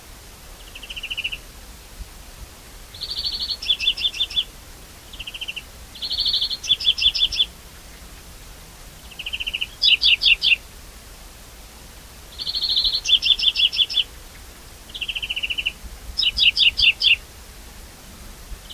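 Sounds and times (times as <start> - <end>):
European greenfinch twittering: 3.0 - 4.5, 5.1 - 7.5, 9.0 - 10.6, 12.3 - 14.1, 14.9 - 17.2.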